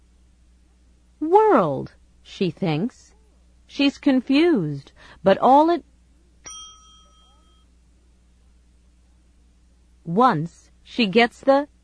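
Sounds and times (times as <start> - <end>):
speech: 1.5 - 3.1, 3.7 - 5.9, 10.1 - 11.7
phone ringing inside a dog's stomach: 6.5 - 7.7.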